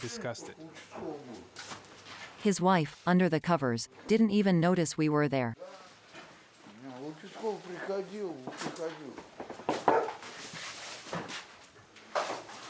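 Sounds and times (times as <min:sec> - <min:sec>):
speech: 0:00.0 - 0:01.8, 0:02.4 - 0:05.8, 0:07.4 - 0:09.3
dog barking: 0:09.8 - 0:10.2.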